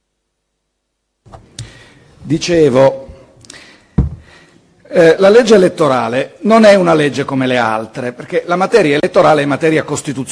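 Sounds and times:
microphone handling noise as a microphone is swapped: 1.3s - 1.8s, 4.0s - 4.3s
speech: 2.3s - 3.0s, 5.0s - 10.3s.

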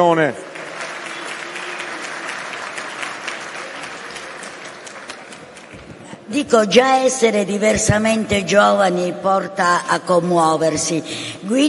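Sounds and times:
speech: 0.0s - 0.5s, 6.3s - 11.6s
audience applause: 0.0s - 6.1s.

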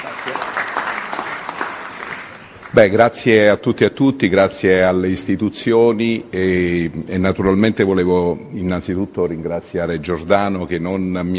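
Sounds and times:
crowd applause welcoming a speaker to the podium: 0.0s - 2.8s
speech: 2.8s - 11.3s.

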